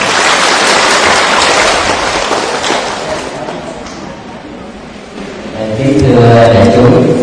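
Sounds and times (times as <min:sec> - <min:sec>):
audience applause: 0:00.0 - 0:03.5
speech: 0:06.3 - 0:07.1.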